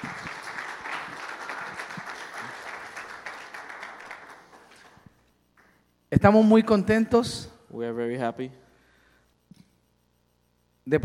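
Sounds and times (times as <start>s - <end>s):
audience applause: 0.0s - 5.2s
speech: 6.2s - 8.6s, 10.9s - 11.0s.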